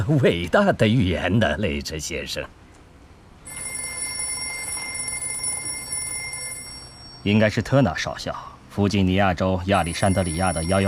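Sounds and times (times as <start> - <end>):
speech: 0.0 - 2.6, 7.2 - 10.8
telephone ringing: 3.4 - 7.7, 9.8 - 10.8.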